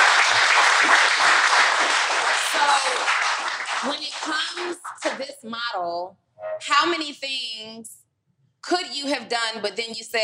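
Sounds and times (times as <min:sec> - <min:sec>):
audience applause: 0:00.0 - 0:05.2
speech: 0:05.2 - 0:08.0, 0:08.6 - 0:10.2.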